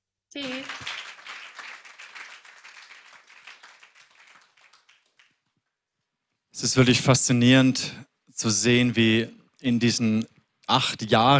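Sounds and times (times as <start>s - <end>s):
speech: 0.3s - 0.8s, 6.6s - 11.3s
applause: 0.4s - 5.6s.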